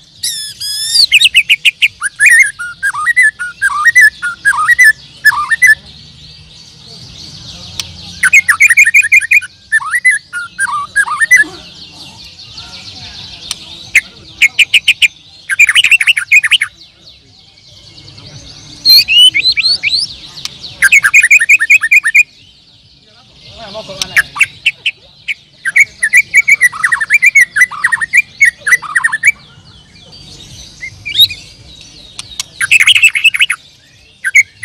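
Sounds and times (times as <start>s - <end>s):
bird singing: 0.0s - 34.6s.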